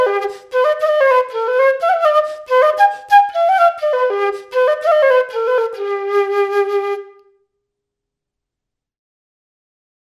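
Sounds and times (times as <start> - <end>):
flute: 0.0 - 7.5.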